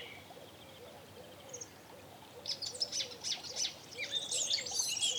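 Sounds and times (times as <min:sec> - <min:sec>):
Eurasian blackcap Sylvia atricapilla song: 0:03.3 - 0:05.1.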